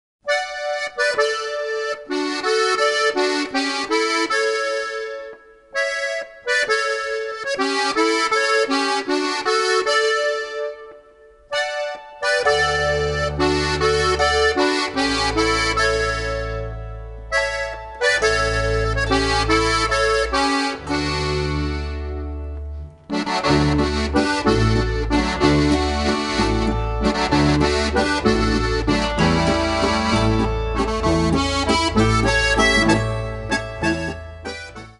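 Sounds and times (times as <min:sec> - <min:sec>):
folk music: 0:00.3 - 0:34.9.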